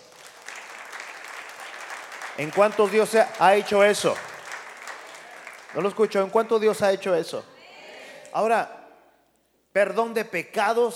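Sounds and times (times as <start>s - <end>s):
audience applause: 0.0s - 6.6s
speech: 2.4s - 4.3s, 5.8s - 7.5s, 8.3s - 8.8s, 9.8s - 10.9s.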